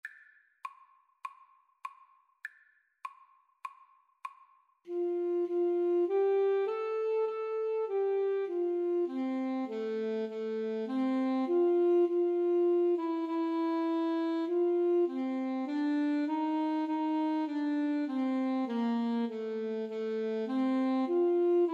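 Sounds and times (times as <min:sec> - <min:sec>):
alto saxophone playing a hymn tune: 0:04.9 - 0:21.7.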